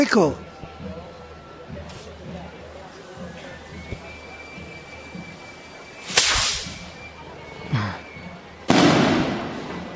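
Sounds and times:
speech: 0.0s - 0.4s
firework rocket crack, pop and bang with rumbling tail: 6.0s - 7.0s, 8.7s - 9.9s.

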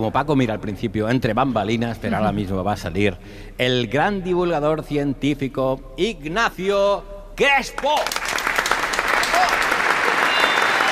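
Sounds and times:
speech: 0.0s - 8.2s
audience applause: 8.0s - 10.8s.

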